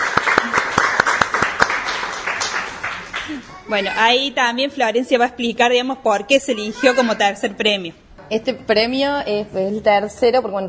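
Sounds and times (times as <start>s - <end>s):
group applauding: 0.0s - 3.8s
speech: 3.3s - 10.6s.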